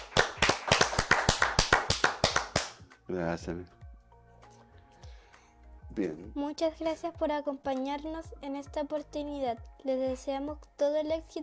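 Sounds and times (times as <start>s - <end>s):
crowd applause: 0.0s - 2.8s
speech: 3.1s - 3.8s, 6.0s - 11.4s.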